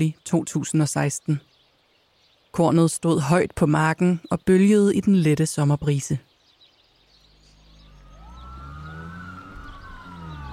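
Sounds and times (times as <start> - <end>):
speech: 0.0 - 1.5, 2.6 - 6.3
police car sirens wailing on a country road: 7.5 - 10.5.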